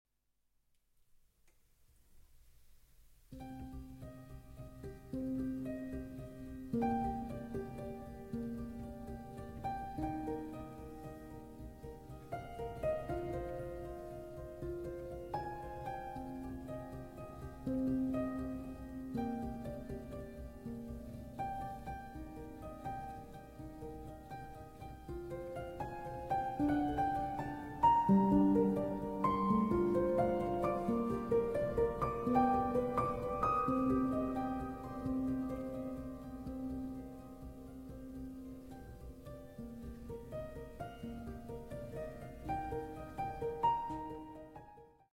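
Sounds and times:
piano: 2.0s - 45.1s.

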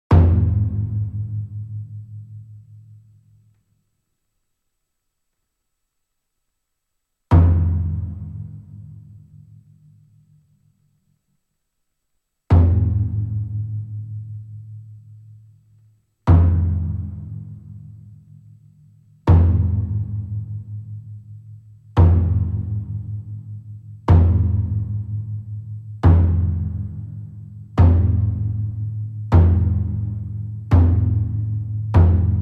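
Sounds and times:
taiko drummers drumming: 0.1s - 1.9s, 7.3s - 9.0s, 12.5s - 14.1s, 16.3s - 17.9s, 19.3s - 20.9s, 22.0s - 32.4s.

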